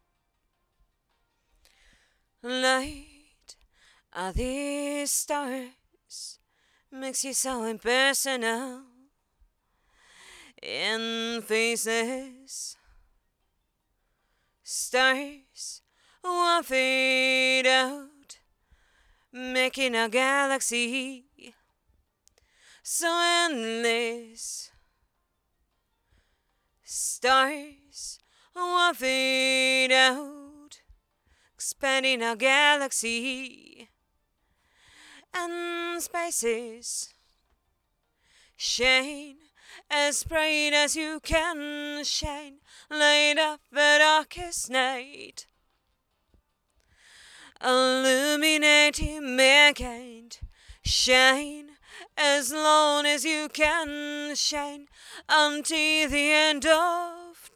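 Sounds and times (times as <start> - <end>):
female vocals: 2.4 - 9.1, 10.4 - 13.0, 14.6 - 18.5, 19.3 - 21.6, 22.8 - 24.8, 26.8 - 31.0, 31.6 - 34.0, 35.1 - 37.2, 38.6 - 45.5, 47.4 - 57.5.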